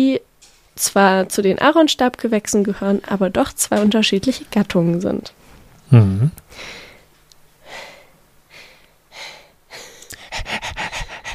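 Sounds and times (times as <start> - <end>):
speech: 0.0 - 6.8
dog panting: 10.1 - 11.3.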